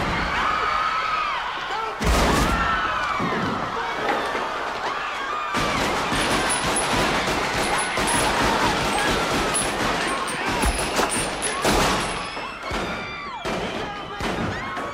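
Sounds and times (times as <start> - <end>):
voices shouting: 0.0 - 14.9
gunshots fired: 2.0 - 3.5, 5.5 - 14.9.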